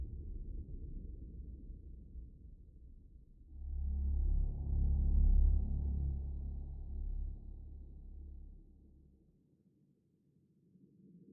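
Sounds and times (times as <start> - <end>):
ambient music: 3.6 - 8.8.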